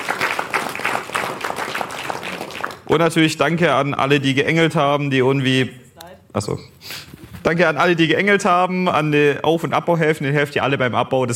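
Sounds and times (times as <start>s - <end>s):
audience applause at a community event honouring the Freifunk Stuttgart volunteers: 0.0s - 2.9s
speech: 2.9s - 11.3s.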